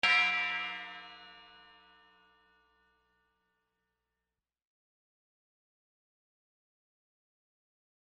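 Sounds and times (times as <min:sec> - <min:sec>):
gong: 0:00.0 - 0:03.2.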